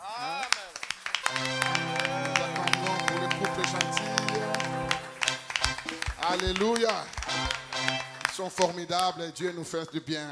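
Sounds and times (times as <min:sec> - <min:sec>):
audience clapping: 0:00.0 - 0:09.6
sustained tonal backdrop: 0:01.3 - 0:06.0
voices cheering and calling out: 0:01.3 - 0:08.5
speech: 0:06.3 - 0:07.5, 0:08.4 - 0:10.2.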